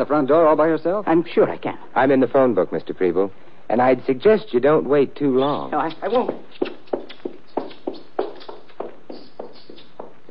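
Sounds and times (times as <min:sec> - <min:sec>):
speech: 0:00.0 - 0:06.7
hurried footsteps leaving: 0:05.8 - 0:10.2.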